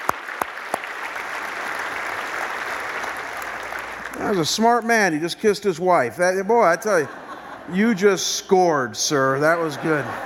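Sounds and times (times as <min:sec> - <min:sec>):
audience applause: 0:00.0 - 0:05.2
speech: 0:04.2 - 0:10.2
laughter: 0:06.3 - 0:10.2.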